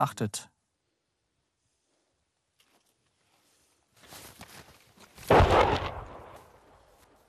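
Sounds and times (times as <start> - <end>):
gunshot: 5.3 - 6.5.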